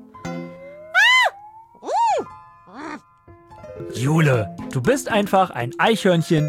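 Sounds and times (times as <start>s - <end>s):
human voice imitating a screaming brown bear: 1.0s - 3.0s
speech: 3.8s - 6.4s.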